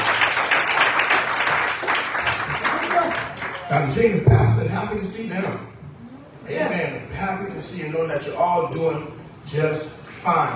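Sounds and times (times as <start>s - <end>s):
audience clapping hands: 0.0s - 4.1s
speech: 3.7s - 5.8s, 6.5s - 10.5s.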